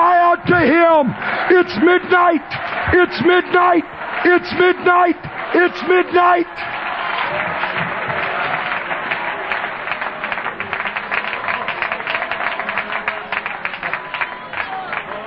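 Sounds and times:
raised voices of congregation: 0.0s - 7.0s
church congregation clapping hands: 0.0s - 15.2s
speech: 0.5s - 7.5s.

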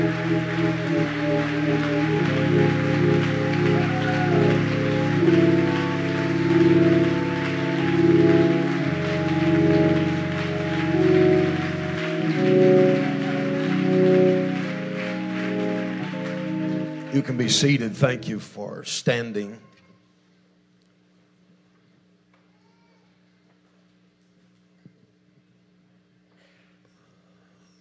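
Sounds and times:
audience clapping hands in praise: 0.0s - 18.5s
speech: 17.2s - 19.7s.

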